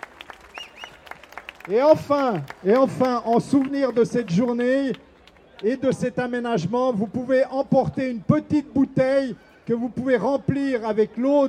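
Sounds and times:
faint audience applause thanking workers at a public fountain inauguration: 0:00.0 - 0:05.8
speech: 0:01.6 - 0:11.4.

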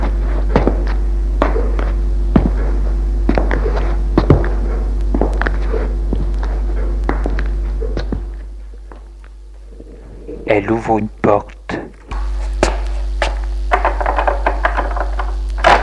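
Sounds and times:
footsteps climbing stairs and along a corridor: 0:00.0 - 0:09.7
constant low hum: 0:00.0 - 0:15.8
speech: 0:10.6 - 0:11.6.

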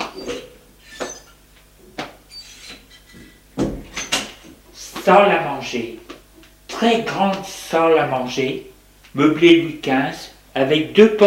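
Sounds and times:
door opening: 0:02.3 - 0:04.5
speech: 0:05.0 - 0:06.0, 0:06.8 - 0:11.2.

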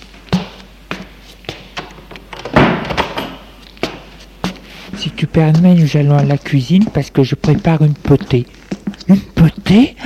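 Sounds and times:
door swung shut with a solid thud: 0:02.3 - 0:03.4
speech: 0:05.0 - 0:10.0.

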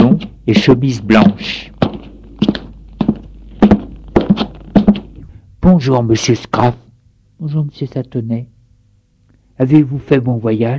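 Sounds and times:
footsteps of a man coming down the stairs: 0:00.0 - 0:05.4
speech: 0:00.5 - 0:01.8, 0:05.7 - 0:06.8, 0:07.4 - 0:08.5, 0:09.6 - 0:10.7.

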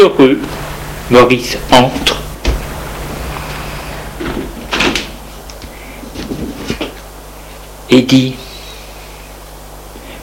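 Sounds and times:
speech: 0:00.1 - 0:02.2, 0:07.9 - 0:08.4
door opening: 0:02.0 - 0:02.7, 0:04.2 - 0:05.2.

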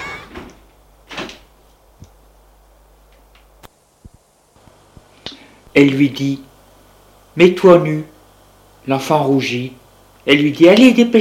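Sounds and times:
door being closed: 0:00.0 - 0:01.4
speech: 0:05.8 - 0:06.5, 0:07.4 - 0:08.1, 0:08.8 - 0:11.1.

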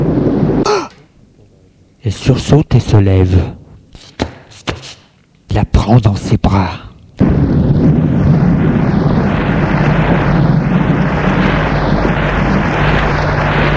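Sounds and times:
thunderstorm rumble: 0:00.0 - 0:00.7, 0:07.1 - 0:13.7
speech: 0:02.0 - 0:03.6, 0:05.6 - 0:07.5.

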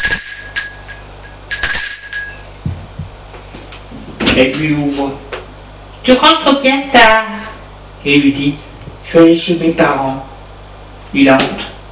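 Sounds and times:
doorbell ringing: 0:00.0 - 0:02.8
speech: 0:04.4 - 0:05.3, 0:06.1 - 0:07.3, 0:08.0 - 0:10.3, 0:11.1 - 0:11.6.

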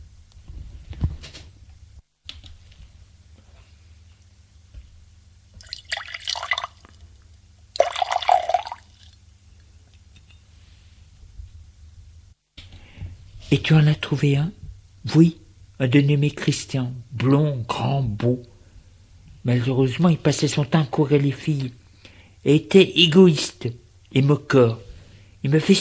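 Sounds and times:
drink being poured: 0:05.6 - 0:07.0, 0:07.8 - 0:09.2
speech: 0:13.5 - 0:18.5, 0:19.4 - 0:21.8, 0:22.4 - 0:25.7.

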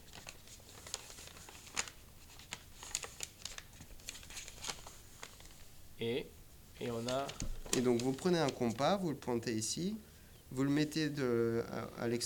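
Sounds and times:
square sheet of paper folded in half: 0:00.0 - 0:05.7, 0:06.8 - 0:09.2
speech: 0:06.0 - 0:12.2.

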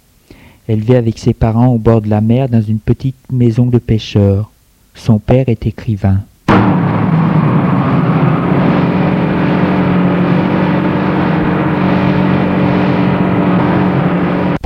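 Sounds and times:
speech: 0:00.7 - 0:06.7
old car driving: 0:06.5 - 0:14.6.

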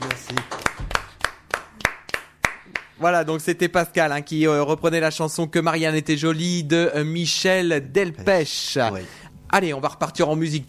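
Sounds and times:
audience applauding: 0:00.0 - 0:02.9
speech: 0:03.0 - 0:10.6.

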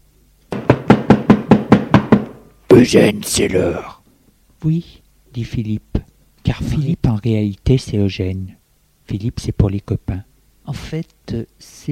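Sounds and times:
knocking on a door: 0:00.5 - 0:02.4
speech: 0:02.8 - 0:04.0, 0:04.6 - 0:05.9, 0:06.5 - 0:11.8.

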